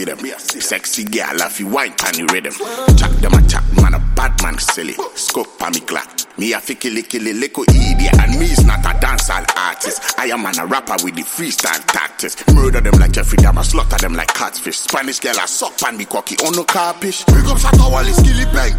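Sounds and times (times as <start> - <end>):
riddim beat: 1.4 - 5.8, 7.7 - 14.5, 16.4 - 18.7.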